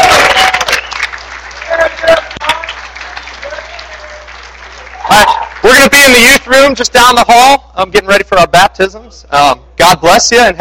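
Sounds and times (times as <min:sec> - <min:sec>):
crowd clapping: 0:00.0 - 0:06.6
speech: 0:06.0 - 0:10.5.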